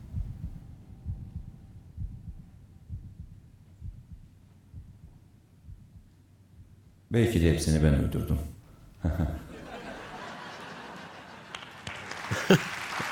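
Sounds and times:
heartbeat: 0:00.0 - 0:07.1
speech: 0:07.1 - 0:09.4, 0:12.5 - 0:12.7
laughter: 0:09.0 - 0:13.1.

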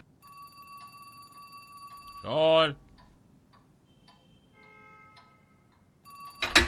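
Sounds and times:
telephone ringing: 0:00.1 - 0:03.0, 0:06.1 - 0:06.6
speech: 0:02.3 - 0:02.8.

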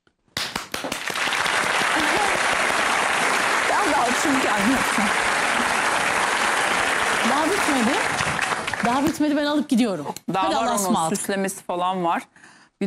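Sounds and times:
crowd applause: 0:00.5 - 0:09.3
speech: 0:04.2 - 0:05.8, 0:07.4 - 0:12.8.

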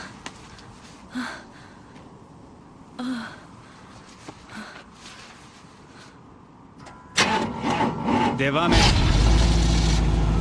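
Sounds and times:
speech: 0:01.2 - 0:01.5, 0:08.4 - 0:09.0
car engine started with the ignition key: 0:07.2 - 0:10.3.

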